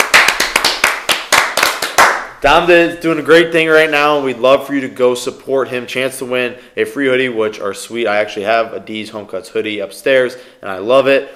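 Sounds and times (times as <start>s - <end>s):
audience clapping: 0.0s - 2.4s
speech: 2.4s - 11.3s.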